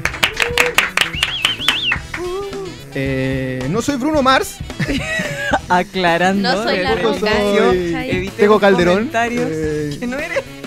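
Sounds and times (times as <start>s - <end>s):
audience applause: 0.0s - 2.3s
speech: 2.9s - 10.4s
laughter: 4.8s - 5.7s.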